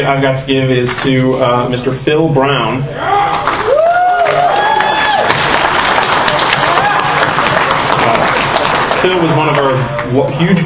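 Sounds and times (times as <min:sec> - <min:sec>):
speech: 0:00.0 - 0:03.6, 0:09.0 - 0:10.6
crowd clapping and cheering: 0:03.3 - 0:10.6.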